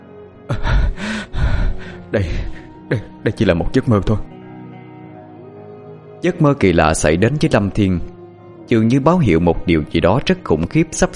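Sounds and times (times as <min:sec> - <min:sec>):
young man's sharp startled gasp: 0:00.5 - 0:02.8
young man's quick heavy panting breaths: 0:00.5 - 0:03.2
speech: 0:02.1 - 0:04.3, 0:06.2 - 0:08.1, 0:08.7 - 0:11.1.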